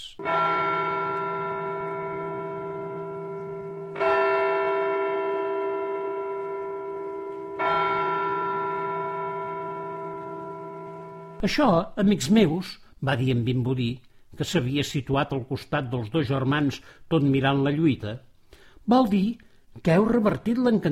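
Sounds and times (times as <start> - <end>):
church bell ringing: 0.2 - 11.5
speech: 11.4 - 20.9.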